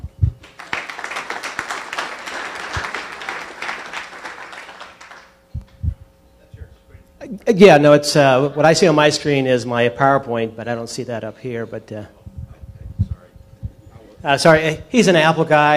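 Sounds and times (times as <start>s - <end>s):
audience round of applause: 0.4s - 5.4s
speech: 7.4s - 12.2s, 14.2s - 15.7s
low thumps: 12.2s - 13.8s.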